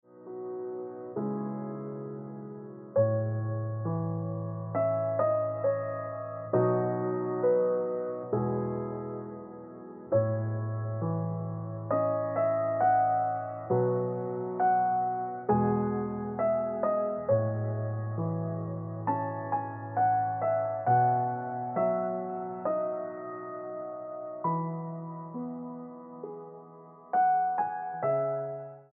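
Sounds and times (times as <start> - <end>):
piano ringtone music: 0.1 - 28.9.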